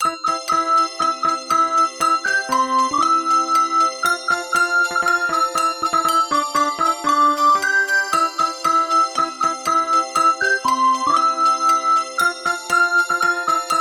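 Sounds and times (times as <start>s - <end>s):
Christmas song: 0.0s - 13.8s.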